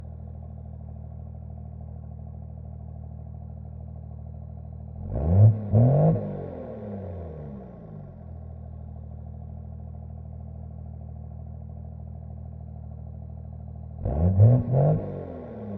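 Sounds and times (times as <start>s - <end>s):
1999 Dodge Ram 2500 diesel exhaust starting, idling, blipping and shutting off: 4.9s - 8.4s, 13.4s - 15.7s.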